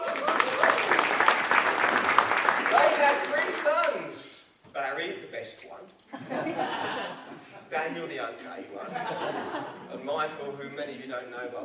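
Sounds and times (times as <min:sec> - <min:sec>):
audience clapping: 0:00.0 - 0:04.2
laughter: 0:06.1 - 0:07.7, 0:08.8 - 0:10.1
speech: 0:07.8 - 0:11.6.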